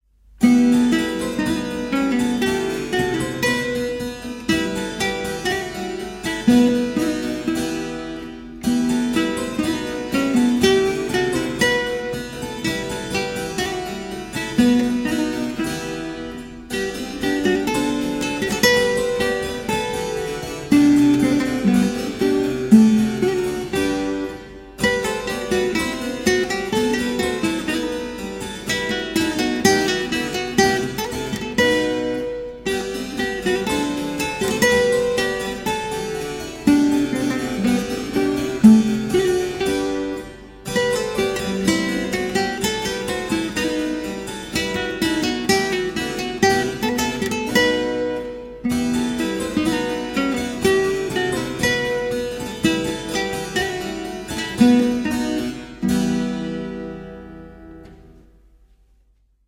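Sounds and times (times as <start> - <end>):
gavotte music: 0.3 - 59.0.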